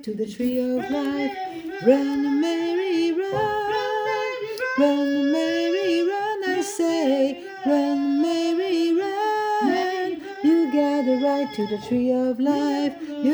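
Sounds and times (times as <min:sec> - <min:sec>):
alto voice singing: 0:00.0 - 0:13.3.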